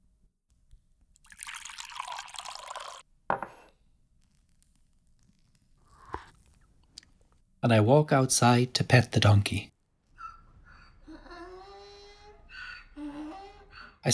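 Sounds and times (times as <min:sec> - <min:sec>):
hot tea poured into a glass: 0:01.2 - 0:03.6
glass clink: 0:02.4 - 0:03.7
speech: 0:07.6 - 0:09.7.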